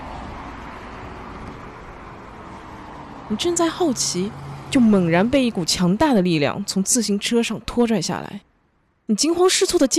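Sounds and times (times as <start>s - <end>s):
motor vehicle engine approaching from behind: 0.0s - 6.7s
speech: 3.3s - 8.5s, 9.1s - 9.9s.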